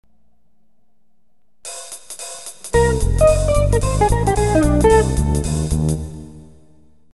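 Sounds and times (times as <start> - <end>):
jazz music: 1.8 - 6.6.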